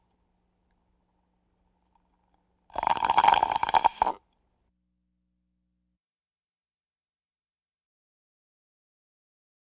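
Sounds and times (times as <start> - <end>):
breathing vocal effects: 2.8 - 4.2.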